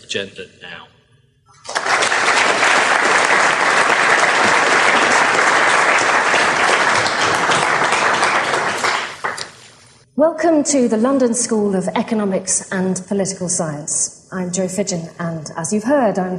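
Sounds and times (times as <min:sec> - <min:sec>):
speech: 0:00.1 - 0:01.0, 0:10.2 - 0:16.3
audience applause welcoming speakers at a London School of Economics event: 0:01.6 - 0:09.6.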